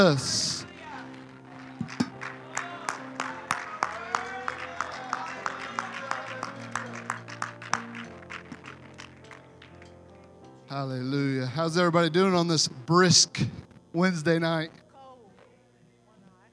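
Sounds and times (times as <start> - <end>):
speech: 0.0 - 0.4, 10.8 - 14.8
audience clapping in steady rhythm: 0.1 - 10.0.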